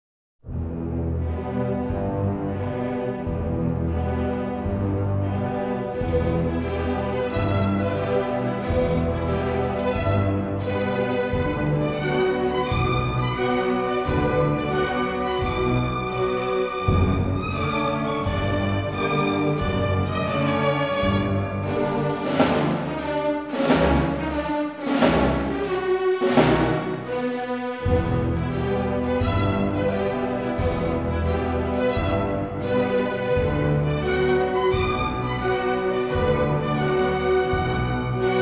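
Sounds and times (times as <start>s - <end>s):
orchestra: 0.4s - 38.4s.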